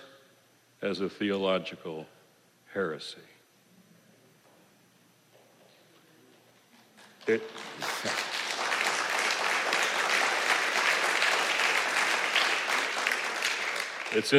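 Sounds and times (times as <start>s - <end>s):
speech: 0.8s - 2.2s, 2.8s - 3.3s, 7.3s - 8.2s, 14.1s - 14.3s
audience applause: 7.0s - 14.3s.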